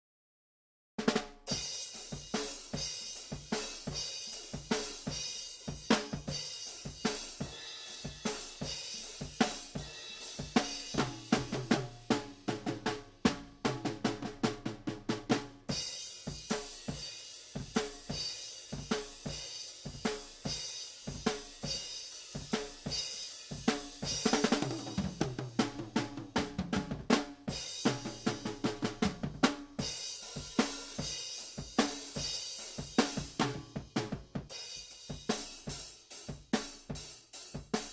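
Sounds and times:
drums: 0:01.0 - 0:37.9.

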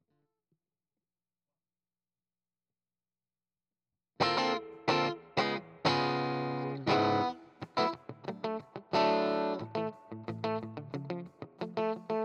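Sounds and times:
guitar: 0:04.2 - 0:12.2.

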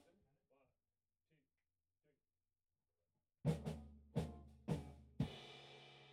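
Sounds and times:
bass through amp: 0:03.5 - 0:05.4.

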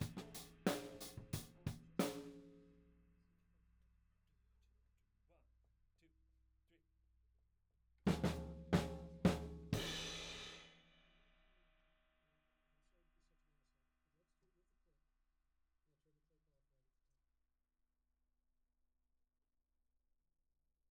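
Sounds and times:
tom drum: 0:00.0 - 0:02.5, 0:08.1 - 0:10.7.

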